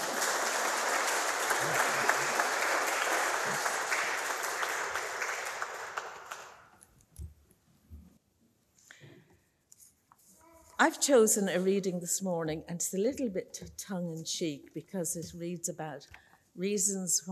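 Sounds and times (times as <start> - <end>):
audience round of applause: 0.0 - 6.8
speech: 10.8 - 17.3.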